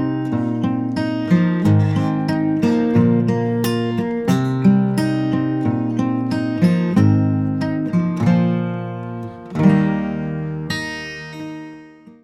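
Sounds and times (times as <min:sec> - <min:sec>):
acoustic guitar: 0:00.0 - 0:12.2.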